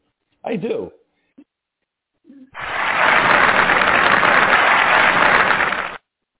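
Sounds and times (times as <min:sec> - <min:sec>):
canned applause sound effect: 0:02.6 - 0:06.0.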